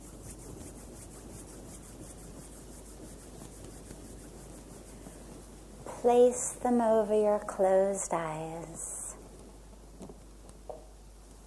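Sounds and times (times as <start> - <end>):
palms rubbing together: 0.0 - 10.6
speech: 6.0 - 8.9.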